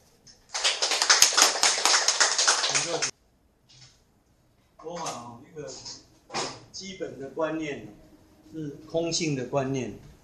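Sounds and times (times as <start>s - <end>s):
crowd applause: 0.5s - 3.1s
speech: 6.8s - 10.1s.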